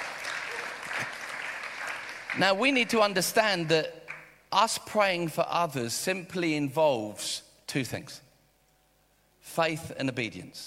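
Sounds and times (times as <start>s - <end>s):
crowd clapping: 0.0s - 4.4s
speech: 2.4s - 8.2s, 9.4s - 10.6s.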